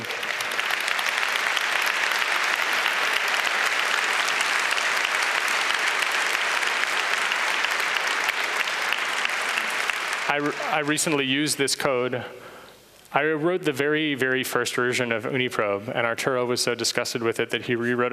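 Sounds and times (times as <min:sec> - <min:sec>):
audience applause: 0:00.0 - 0:11.4
speech: 0:10.4 - 0:12.5, 0:13.1 - 0:18.1.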